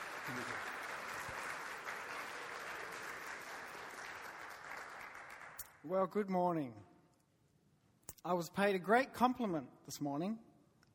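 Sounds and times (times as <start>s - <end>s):
audience applauding: 0.0s - 5.7s
speech: 0.3s - 0.8s, 5.8s - 6.9s, 8.2s - 10.5s.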